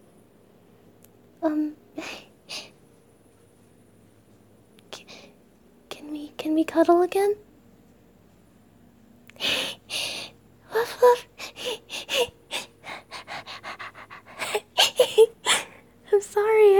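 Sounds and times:
speech: 0:01.4 - 0:01.8, 0:06.7 - 0:07.5
person panting playfully like an excited puppy: 0:09.4 - 0:10.3, 0:11.4 - 0:15.8
soft whimper-like tones: 0:10.7 - 0:15.8.

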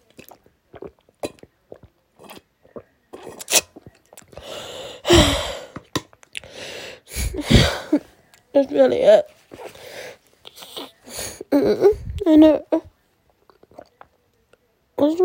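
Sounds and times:
person drinking water and swallowing: 0:00.0 - 0:06.6, 0:07.2 - 0:07.9, 0:10.4 - 0:14.2
speech: 0:08.6 - 0:09.3, 0:11.6 - 0:12.8.

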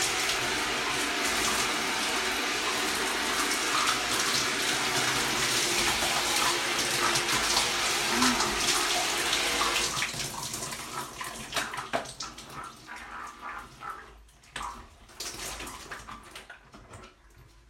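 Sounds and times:
shower water running: 0:00.0 - 0:16.5
person moaning: 0:08.0 - 0:09.0.

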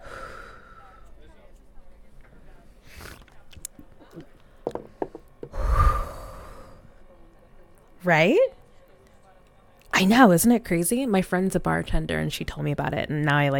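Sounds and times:
forceful breathy exhale: 0:05.5 - 0:06.8
speech: 0:08.0 - 0:08.6, 0:10.0 - 0:13.5.

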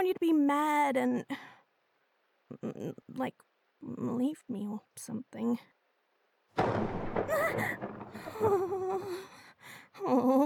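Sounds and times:
speech: 0:00.0 - 0:01.6, 0:02.5 - 0:05.8, 0:06.6 - 0:10.4
thunder clap: 0:06.6 - 0:09.3.

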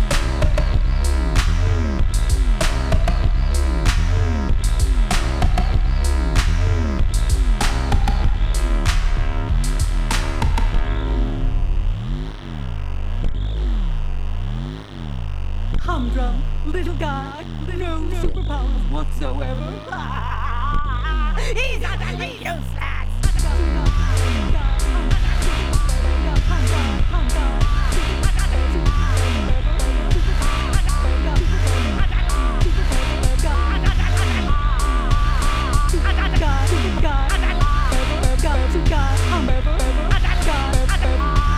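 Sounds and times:
drum line playing: 0:00.0 - 0:11.0, 0:23.2 - 0:41.5
hum: 0:00.0 - 0:41.5
laughter: 0:19.5 - 0:22.7.

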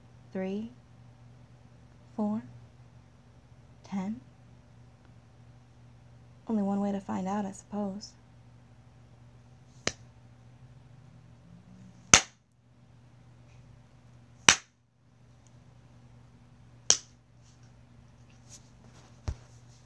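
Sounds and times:
speech: 0:00.3 - 0:00.8, 0:02.2 - 0:02.6, 0:03.9 - 0:04.3, 0:06.5 - 0:08.2
slaps: 0:09.8 - 0:10.0, 0:12.1 - 0:12.4, 0:14.5 - 0:14.7, 0:16.9 - 0:17.2.

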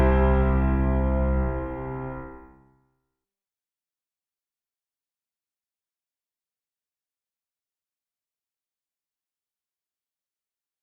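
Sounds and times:
piano cover: 0:00.0 - 0:02.5.

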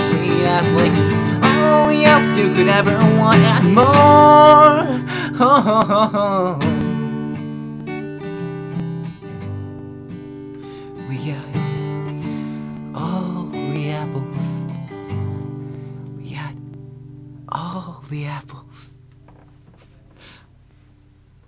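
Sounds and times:
acoustic cover song: 0:00.0 - 0:21.4.

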